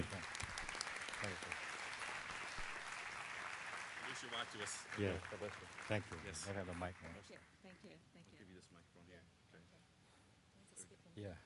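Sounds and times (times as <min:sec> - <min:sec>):
audience applause welcoming a speaker: 0:00.0 - 0:07.3
speech: 0:04.2 - 0:09.9, 0:10.8 - 0:11.4.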